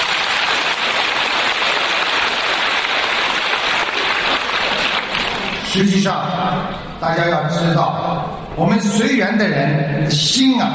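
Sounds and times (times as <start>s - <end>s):
crowd applause: 0.0s - 5.8s
speech: 5.8s - 10.7s.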